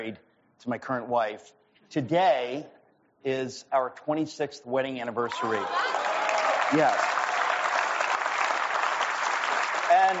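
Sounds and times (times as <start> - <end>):
speech: 0.0 - 6.0, 6.7 - 7.2
audience applause: 5.3 - 10.1.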